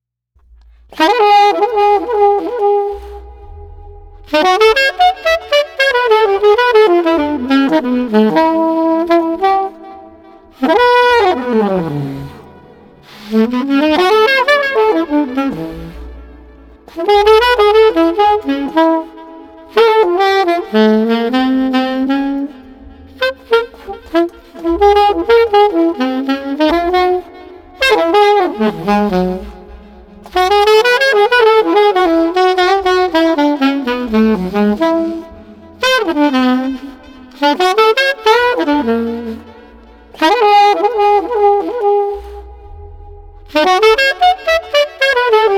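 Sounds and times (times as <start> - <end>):
spirited street saxophone playing: 0.6 - 45.5.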